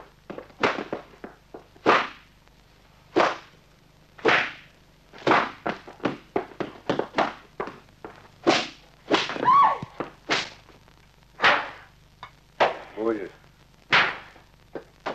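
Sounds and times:
slapping blows in a dramatized beating scene: 0.3 - 2.3, 3.1 - 3.6, 4.2 - 10.8, 11.4 - 11.9, 13.8 - 15.1.

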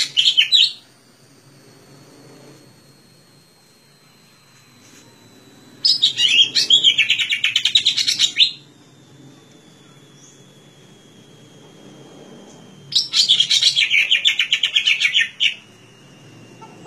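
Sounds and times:
leafbird singing chirping warbled notes: 0.0 - 0.9, 5.8 - 8.7, 9.7 - 10.6, 12.4 - 15.8.

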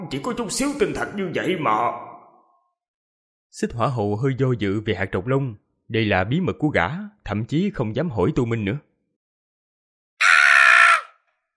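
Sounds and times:
speech: 0.1 - 2.1, 3.5 - 8.9
loud shout: 10.2 - 11.2.

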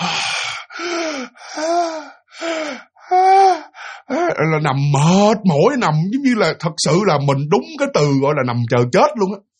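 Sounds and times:
voice imitating the labored wheezing breathing of an old woman: 0.0 - 5.2
speech: 4.4 - 9.5.

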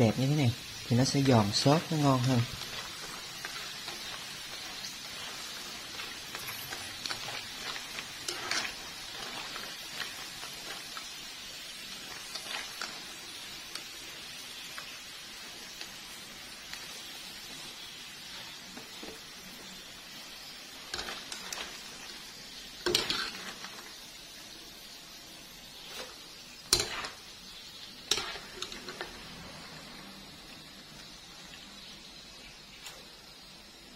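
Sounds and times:
speech: 0.0 - 2.7
food frying in hot oil: 0.0 - 33.9.

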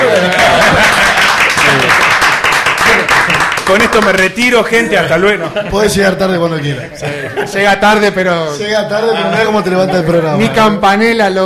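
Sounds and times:
laughter: 0.0 - 2.0, 4.8 - 10.7
dense loud applause: 0.0 - 4.4
speech: 3.9 - 11.4.

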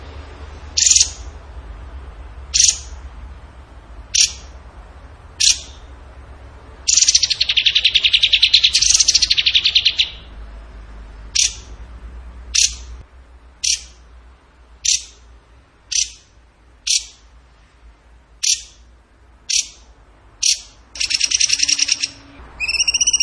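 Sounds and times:
bird buzzy song: 0.0 - 1.4, 2.5 - 3.1, 4.1 - 4.7, 5.4 - 6.0, 6.8 - 10.4, 11.1 - 11.8, 12.5 - 13.0, 13.6 - 14.1, 14.8 - 17.4, 18.4 - 23.2
low hum: 0.0 - 19.4.

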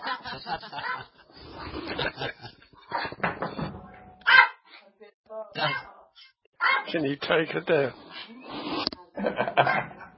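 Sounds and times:
laughter: 0.0 - 2.8, 9.2 - 10.1
speech: 0.3 - 2.6, 6.9 - 8.3, 9.3 - 9.9
dog barking: 4.3 - 4.6, 6.6 - 7.0, 9.6 - 10.1.

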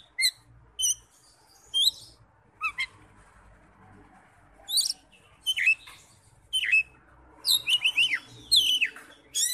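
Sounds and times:
Oriental magpie-robin singing: 0.0 - 3.0, 4.6 - 9.5.

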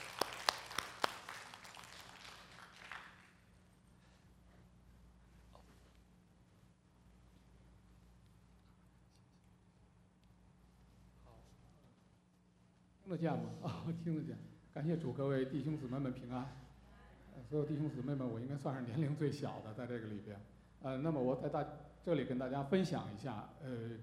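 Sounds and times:
audience applause: 0.0 - 3.4
quiet steady hum: 0.0 - 24.0
speech: 13.1 - 16.6, 17.4 - 24.0.

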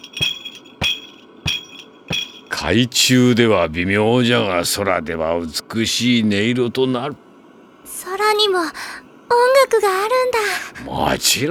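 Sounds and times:
tambourine being struck: 0.0 - 2.6
speech: 2.6 - 7.2, 9.7 - 11.4.

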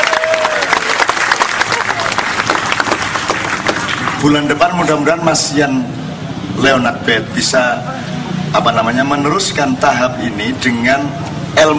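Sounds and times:
audience clapping: 0.0 - 4.4
speech: 4.2 - 11.7.

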